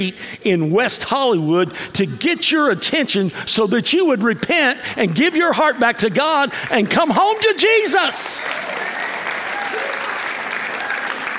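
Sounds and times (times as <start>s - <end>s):
speech: 0.0s - 8.6s
audience applause: 8.1s - 11.3s.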